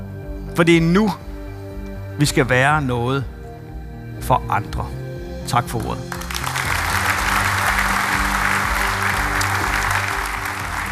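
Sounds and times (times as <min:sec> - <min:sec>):
speech: 0:00.6 - 0:01.3, 0:02.2 - 0:03.4, 0:04.2 - 0:06.2
large audience applause after a speech: 0:06.1 - 0:10.8.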